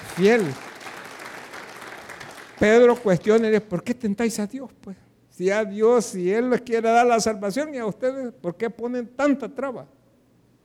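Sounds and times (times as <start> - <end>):
audience applause: 0.0 - 3.2
speech: 0.2 - 0.7, 2.6 - 10.0.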